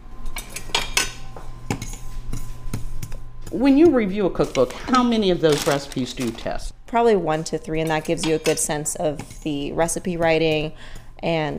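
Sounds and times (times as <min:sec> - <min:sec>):
faint hum: 0:00.0 - 0:11.5
speech: 0:03.5 - 0:11.5
pan and utensil clinking while dry-toasting sesame seeds over medium-low heat: 0:07.8 - 0:08.9.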